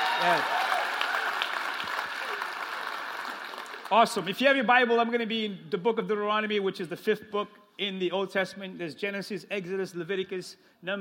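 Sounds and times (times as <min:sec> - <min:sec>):
audience clapping together: 0:00.0 - 0:04.3
speech: 0:00.2 - 0:00.6, 0:03.9 - 0:10.9.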